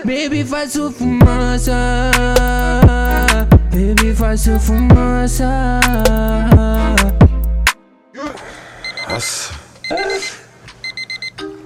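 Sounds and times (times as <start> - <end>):
speech: 0.0 - 3.0, 3.7 - 7.2, 9.2 - 10.3
phone ringing with a bright electronic tone: 8.8 - 11.5.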